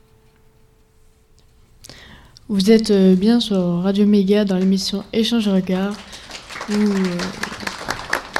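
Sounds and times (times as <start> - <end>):
speech: 2.5 - 6.1, 6.7 - 7.4
audience applause: 5.6 - 8.3.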